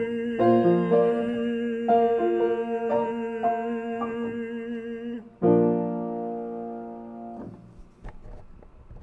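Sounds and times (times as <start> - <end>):
bass choir singing: 0.0 - 6.3.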